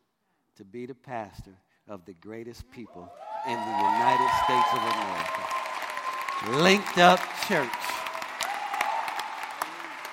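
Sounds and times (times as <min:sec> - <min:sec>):
speech: 0:00.6 - 0:05.6, 0:06.4 - 0:08.0
audience applause: 0:03.2 - 0:10.1.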